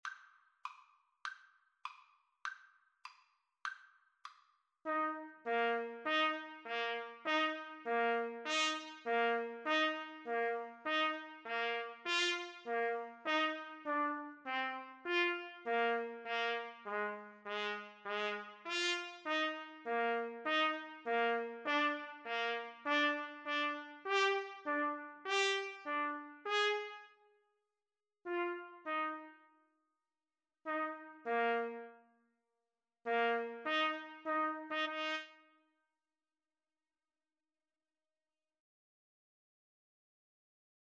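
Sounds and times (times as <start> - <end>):
trumpet duet: 4.9 - 27.2, 28.3 - 29.5, 30.7 - 32.0, 33.1 - 35.4.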